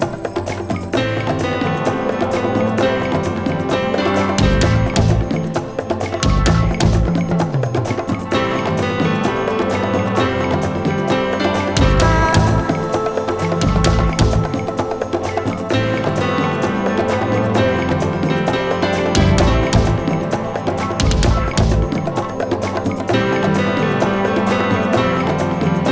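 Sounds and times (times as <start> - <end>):
rock music: 0.0 - 25.9.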